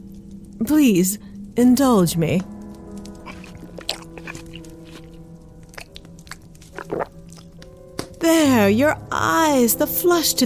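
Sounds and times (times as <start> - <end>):
speech: 0.6 - 2.6, 8.6 - 10.4
wet chewing of steak: 2.8 - 7.7.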